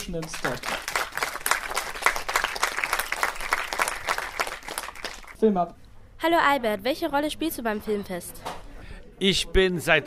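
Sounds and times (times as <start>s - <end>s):
audience applause: 0.0s - 5.4s
speech: 0.1s - 0.9s, 5.4s - 8.5s, 9.2s - 10.0s.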